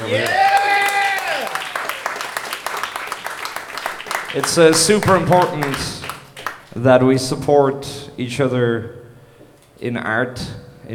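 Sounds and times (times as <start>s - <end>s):
audience applause: 0.0s - 6.7s
speech: 0.1s - 0.5s, 4.4s - 6.0s, 6.8s - 9.0s, 9.8s - 10.9s.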